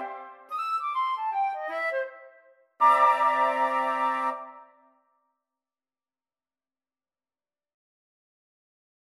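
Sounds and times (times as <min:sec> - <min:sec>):
flute choir playing happy jazzy birthday tune: 0:00.0 - 0:04.6.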